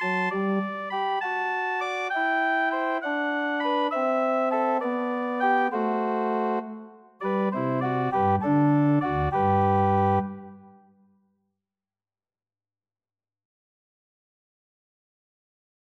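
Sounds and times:
pastorale played on organ: 0:00.0 - 0:10.7.

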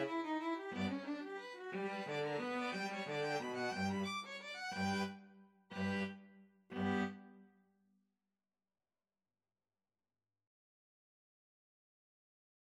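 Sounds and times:
string trio playing a serenade: 0:00.0 - 0:05.1, 0:05.7 - 0:07.3.

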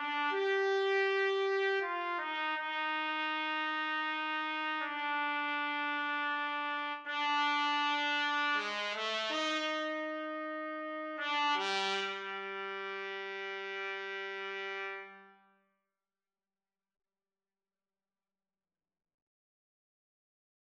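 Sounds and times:
trumpet: 0:00.0 - 0:15.6.

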